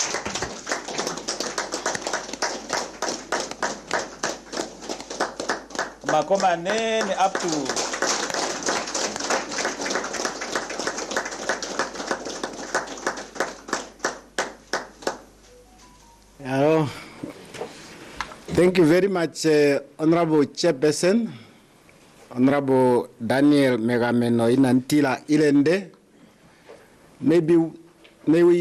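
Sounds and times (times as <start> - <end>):
audience clapping hands: 0.0 - 15.5
speech: 6.1 - 7.9, 18.6 - 21.4, 22.3 - 26.0, 27.2 - 28.5.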